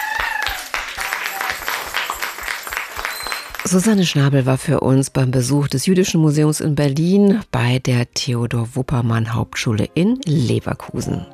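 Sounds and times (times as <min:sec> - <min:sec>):
cheers and whistles: 0:00.0 - 0:03.7
group applauding: 0:00.0 - 0:04.1
speech: 0:03.6 - 0:11.3.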